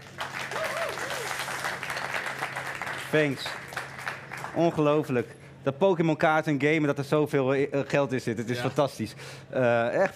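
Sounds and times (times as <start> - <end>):
audience applause: 0.0 - 5.0
speech: 3.1 - 3.6, 4.5 - 10.1.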